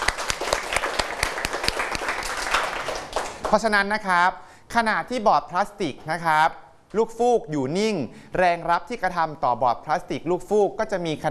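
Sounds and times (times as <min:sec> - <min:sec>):
students clapping for a classmate: 0:00.0 - 0:03.6
speech: 0:03.5 - 0:11.3.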